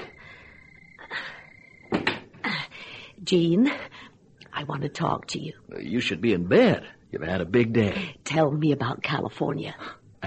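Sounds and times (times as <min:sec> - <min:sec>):
front door opening: 0:01.7 - 0:02.4
speech: 0:03.2 - 0:03.9, 0:04.6 - 0:10.2.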